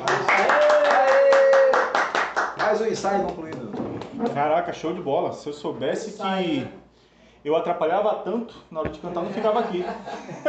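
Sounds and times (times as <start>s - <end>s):
hand clapping: 0.0s - 4.4s
speech: 2.8s - 6.8s, 7.4s - 10.4s
laughter: 9.1s - 10.4s.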